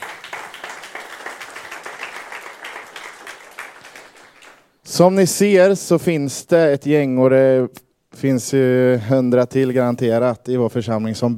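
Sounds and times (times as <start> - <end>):
audience clapping: 0.0 - 4.8
speech: 4.9 - 11.3.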